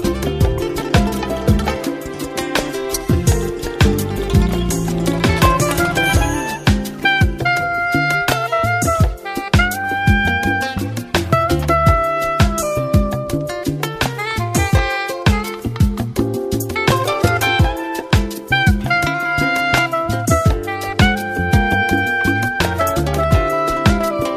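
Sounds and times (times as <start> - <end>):
smooth jazz music: 0.0 - 24.3.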